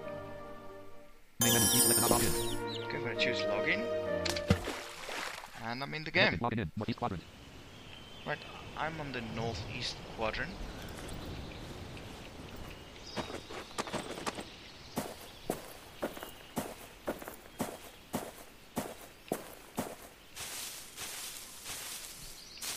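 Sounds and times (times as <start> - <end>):
speech: 1.7 - 4.5, 5.6 - 7.4, 8.2 - 10.8
character's footsteps walking in a video game: 4.2 - 5.6, 10.8 - 22.7.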